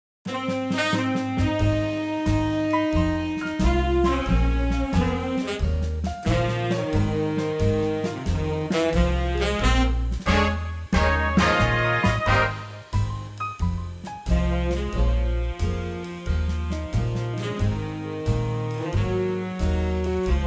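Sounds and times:
big band backing track in A flat: 0:00.2 - 0:20.4.

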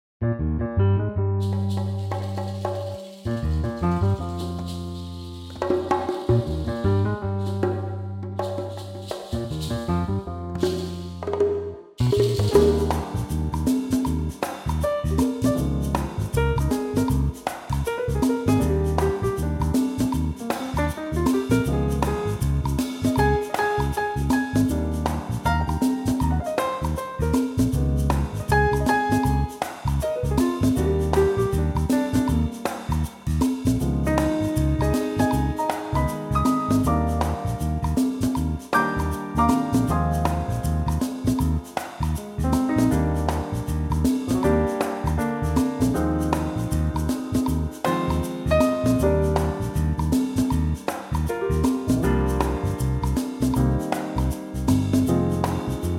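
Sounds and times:
instrumental trio music in E-flat: 0:00.4 - 0:55.9.

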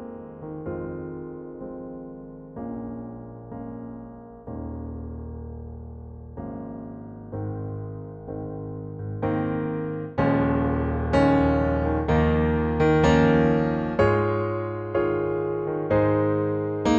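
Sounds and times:
piano in A-flat: 0:00.0 - 0:16.9.

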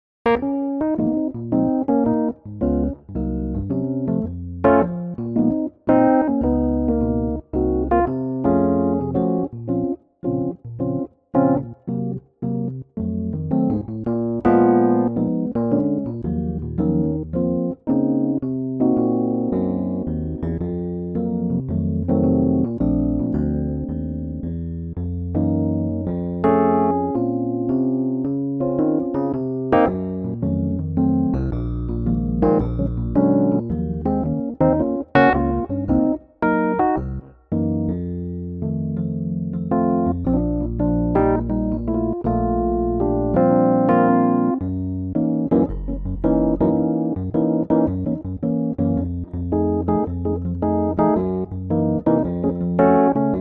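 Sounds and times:
Rhodes electric piano in B-flat minor: 0:00.2 - 0:53.3.

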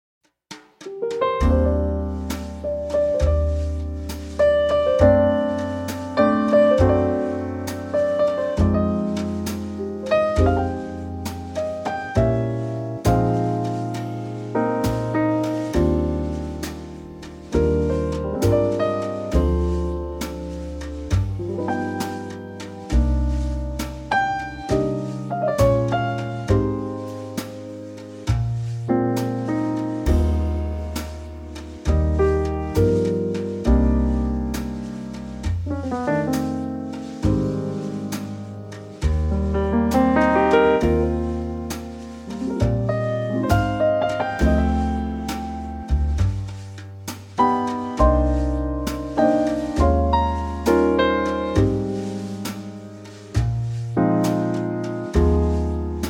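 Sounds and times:
instrumental trio music in E-flat: 0:00.5 - 0:56.0.

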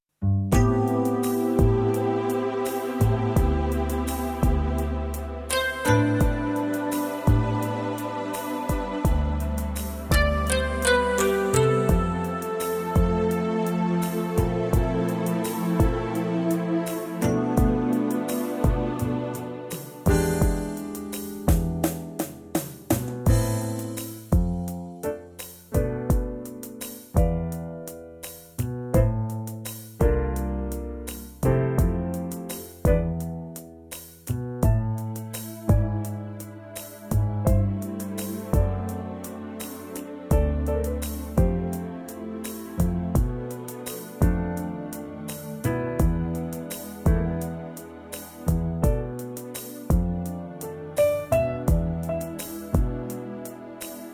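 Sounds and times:
backing track in A minor: 0:00.4 - 0:54.1.

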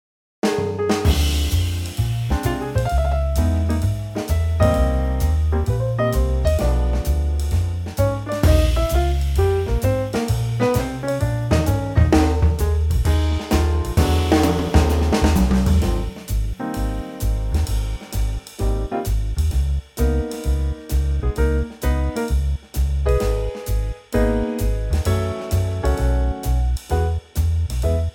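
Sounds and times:
trio in A flat: 0:00.4 - 0:28.1.

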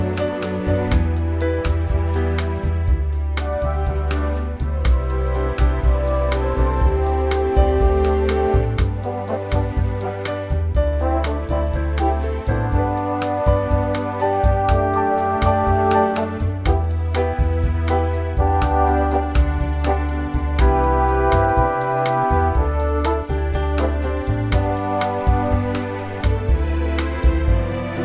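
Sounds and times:
orchestral bossa nova arrangement in G: 0:00.0 - 0:28.0.

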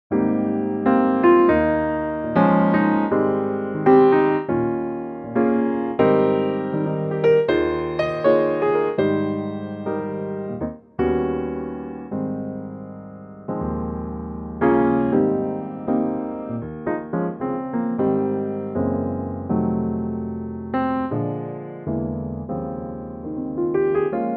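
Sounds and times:
piano in A-flat: 0:00.0 - 0:24.3.

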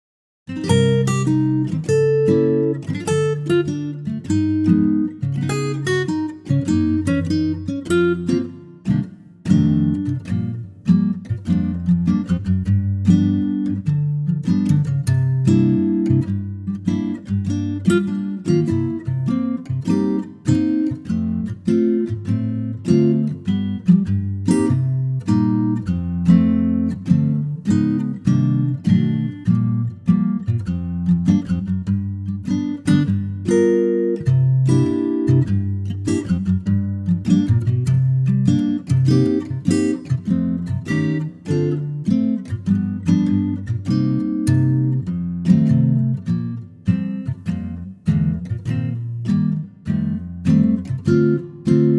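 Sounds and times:
acoustic guitar in B flat: 0:00.5 - 0:51.9.

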